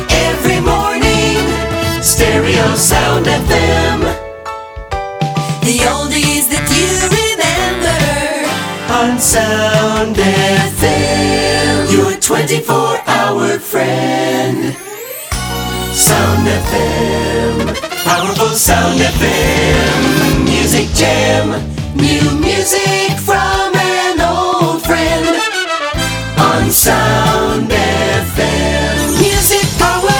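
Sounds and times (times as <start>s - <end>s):
jingle montage: 0.0s - 12.2s, 12.8s - 30.1s.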